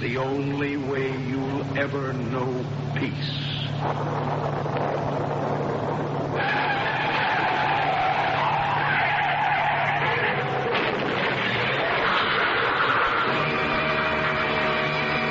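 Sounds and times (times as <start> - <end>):
speech: 0.0 - 6.7
road noise roar: 0.0 - 15.2
car tires skidding with a loud sustained screech: 5.9 - 15.2.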